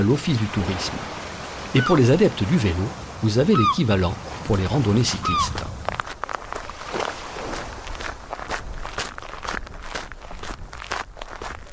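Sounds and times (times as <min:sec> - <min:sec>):
speech: 0:00.0 - 0:05.8
footsteps walking down to the beach of Penouet: 0:05.4 - 0:11.7.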